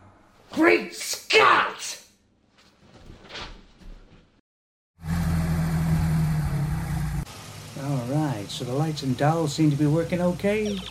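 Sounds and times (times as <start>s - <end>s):
speech: 0.5s - 2.0s, 8.6s - 10.8s
DeLorean car engine drone: 5.0s - 10.6s.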